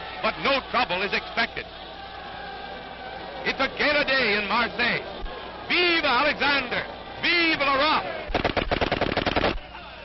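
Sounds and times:
speech: 0.2s - 1.9s, 3.5s - 8.2s
gunshots fired at a motorcade: 8.3s - 9.7s.

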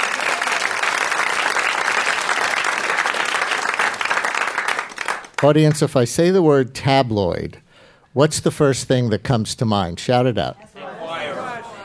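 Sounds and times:
audience applause: 0.0s - 5.5s
speech: 5.4s - 7.6s, 8.2s - 10.6s.

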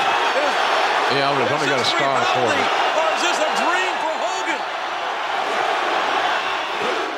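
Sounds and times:
wrestling crowd cheering: 0.0s - 7.1s
speech: 1.1s - 3.3s.

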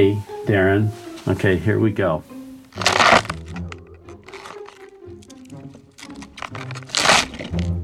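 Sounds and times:
speech: 0.0s - 2.3s
celery stalks twisted and broken to mimic crushing bones: 2.7s - 7.8s.

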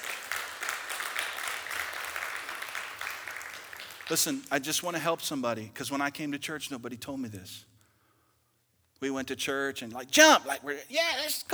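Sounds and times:
round of applause: 0.0s - 4.6s
speech: 4.1s - 7.7s, 9.0s - 11.5s.

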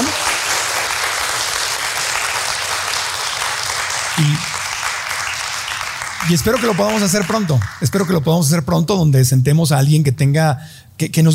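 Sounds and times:
audience applause: 0.0s - 8.3s
speech: 6.3s - 11.3s.

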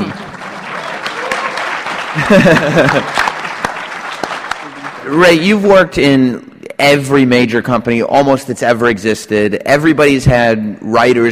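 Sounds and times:
audience clapping: 0.0s - 5.7s
laughter: 1.3s - 3.7s
speech: 2.2s - 3.3s, 5.1s - 11.2s.

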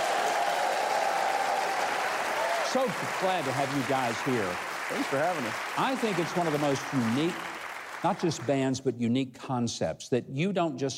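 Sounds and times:
crowd applause welcoming a band: 0.0s - 8.8s
speech: 2.7s - 10.9s.

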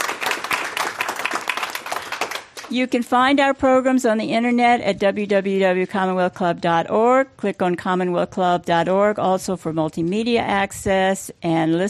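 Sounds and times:
audience applause at a Commonwealth Club public forum: 0.0s - 2.7s
speech: 2.7s - 11.8s.

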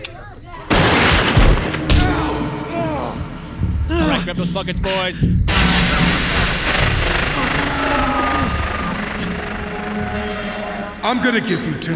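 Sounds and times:
gunshots: 0.7s - 3.4s, 5.5s - 11.1s
speech: 4.2s - 6.4s, 11.0s - 11.9s.

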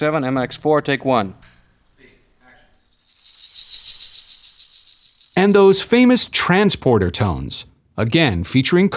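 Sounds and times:
speech: 0.0s - 1.5s, 5.4s - 8.9s
maracas rattling: 2.7s - 6.4s.

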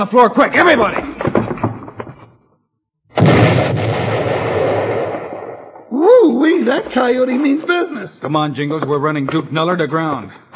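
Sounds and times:
speech: 0.0s - 1.1s, 6.6s - 10.5s
scattered knocks: 0.8s - 2.3s
dynamite explosion: 3.1s - 6.2s.

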